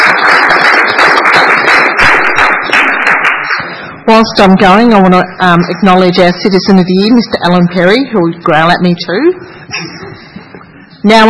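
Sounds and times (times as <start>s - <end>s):
crowd applause: 0.0s - 4.0s
speech: 4.1s - 10.0s, 11.0s - 11.2s.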